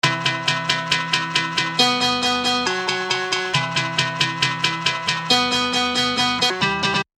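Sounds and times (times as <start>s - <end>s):
guitar: 0.0s - 7.1s.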